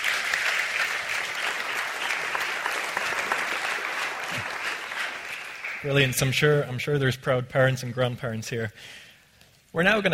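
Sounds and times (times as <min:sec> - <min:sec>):
crowd applauding: 0:00.0 - 0:06.4
speech: 0:05.8 - 0:09.1, 0:09.7 - 0:10.1.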